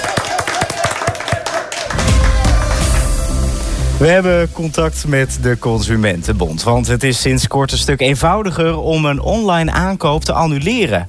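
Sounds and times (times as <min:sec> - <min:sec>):
applause: 0:00.0 - 0:03.6
speech: 0:04.0 - 0:11.0.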